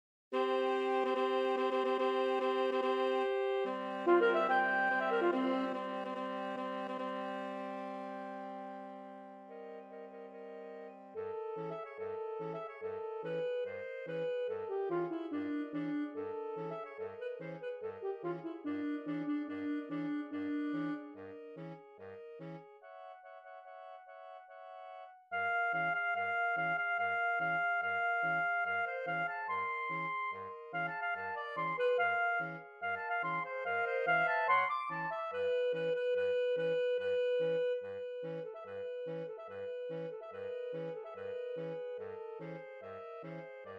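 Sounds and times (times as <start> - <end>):
saxophones playing a march suite: 0.4 - 23.9, 25.4 - 43.7.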